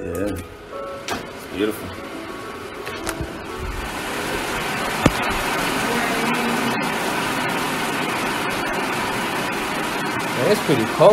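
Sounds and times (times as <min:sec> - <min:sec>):
speech: 0:00.1 - 0:00.6, 0:01.5 - 0:02.1, 0:10.4 - 0:11.1
rain falling: 0:03.2 - 0:11.1.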